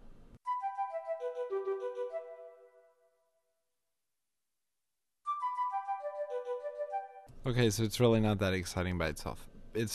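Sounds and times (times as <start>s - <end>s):
oboe playing the main melody: 0.4s - 3.2s, 5.3s - 7.3s
alto flute playing staccato sixteenth notes in a descending arpeggio: 0.5s - 2.9s, 5.3s - 7.3s
speech: 7.4s - 9.9s.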